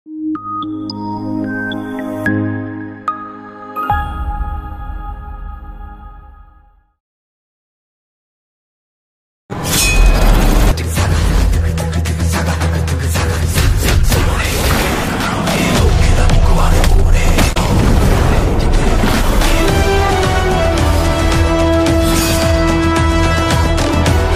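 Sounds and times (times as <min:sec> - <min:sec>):
trailer background music: 0:00.1 - 0:07.0, 0:09.5 - 0:24.3.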